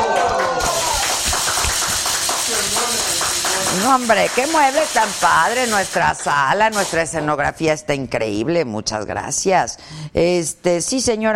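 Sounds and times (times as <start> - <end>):
applause: 0.0 - 6.7
speech: 3.9 - 11.3.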